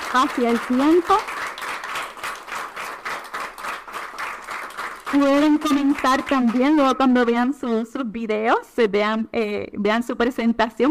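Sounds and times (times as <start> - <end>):
audience applause: 0.0 - 7.1
speech: 0.1 - 1.4, 5.1 - 10.8.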